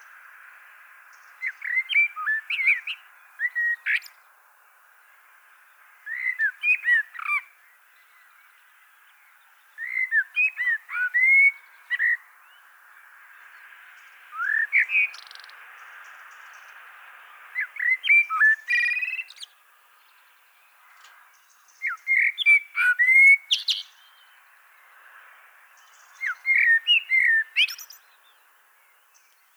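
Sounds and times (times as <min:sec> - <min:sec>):
common blackbird singing: 0:01.2 - 0:04.2, 0:06.1 - 0:09.0, 0:09.6 - 0:12.6, 0:14.3 - 0:15.6, 0:17.5 - 0:24.4, 0:25.8 - 0:29.5.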